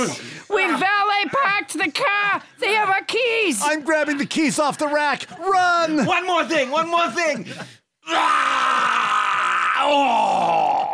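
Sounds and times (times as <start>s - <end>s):
speech: 0.0s - 8.7s, 9.8s - 10.8s
person groaning: 8.1s - 10.9s
person vomiting: 8.1s - 10.9s.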